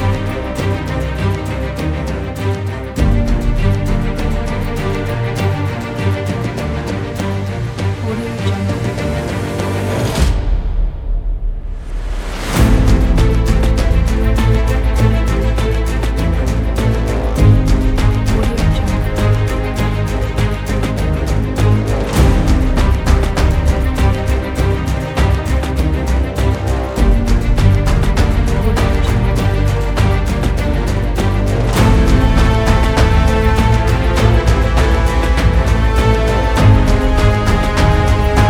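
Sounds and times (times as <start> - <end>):
emotional powerful motivational cinematic music: 0.0 - 38.4.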